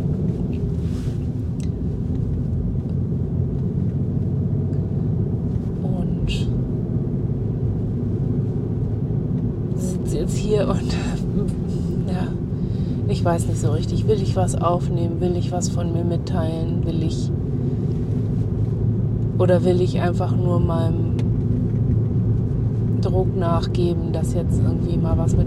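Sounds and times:
car engine rumble inside a car: 0.0 - 25.4
rustling: 0.2 - 2.9
speech: 10.3 - 11.2, 13.2 - 17.5, 19.4 - 21.0, 23.0 - 25.4.

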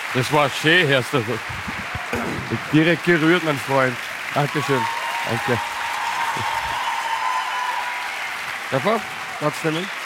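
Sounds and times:
audience applause: 0.0 - 10.0
speech: 0.1 - 5.8, 6.4 - 6.6, 8.7 - 10.0.

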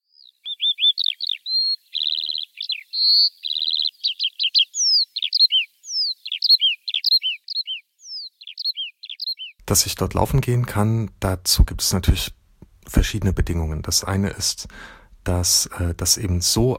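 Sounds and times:
Eurasian skylarks singing high in the sky: 0.0 - 9.6
speech: 3.3 - 3.6, 9.7 - 12.4, 13.0 - 16.7.

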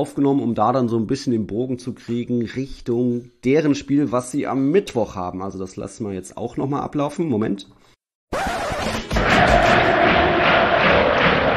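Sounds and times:
speech: 0.0 - 7.8
FC Sevilla football fans cheering in stadium: 9.1 - 11.5.

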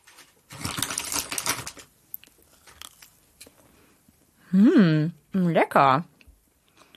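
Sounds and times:
homemade cookie being bitten and chewed: 0.0 - 3.8
speech: 4.5 - 6.1.

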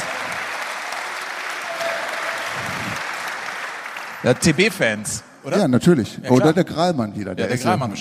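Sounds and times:
audience applause: 0.0 - 5.1
speech: 4.2 - 7.9.

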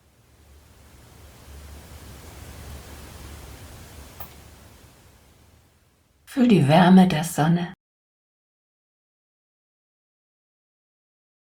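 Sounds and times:
moving water: 0.0 - 5.8
speech: 6.3 - 7.8.

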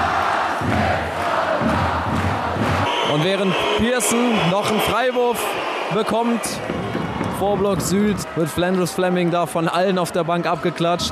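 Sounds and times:
standing basketball fans in an arena hall roaring and singing: 0.0 - 9.6
speech: 3.2 - 11.1.

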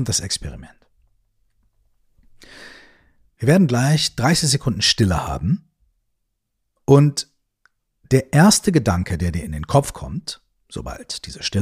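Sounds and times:
speech: 0.0 - 0.8, 3.4 - 5.7, 6.9 - 7.3, 8.1 - 11.6
breath in through the nose and out through the mouth: 2.4 - 3.2.

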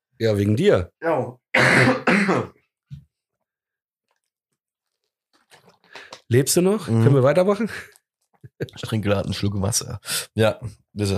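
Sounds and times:
speech: 0.2 - 2.6, 6.3 - 8.0, 8.6 - 11.1
coughing fit: 1.6 - 2.6.

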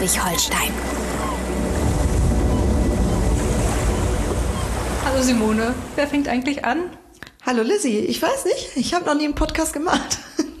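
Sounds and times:
speech: 0.0 - 1.6, 5.1 - 10.2
sea waves: 0.0 - 7.2.

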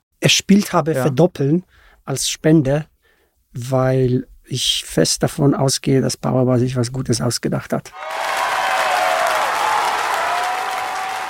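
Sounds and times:
speech: 0.3 - 2.9, 3.6 - 8.4
hands clapping: 8.0 - 11.2.

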